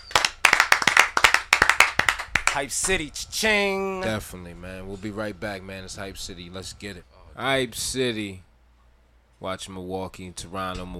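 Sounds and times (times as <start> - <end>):
applause: 0.0 - 3.0
speech: 2.6 - 8.5, 9.4 - 10.9.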